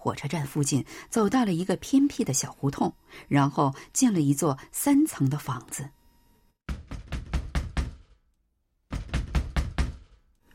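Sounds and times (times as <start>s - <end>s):
speech: 0.0s - 6.0s
fist pounding hard on a door: 6.7s - 8.3s, 8.9s - 10.3s.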